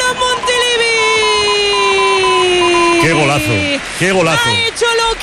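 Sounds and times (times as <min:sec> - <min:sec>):
football stadium goal horn blaring: 0:00.1 - 0:03.8
speech: 0:04.0 - 0:05.2.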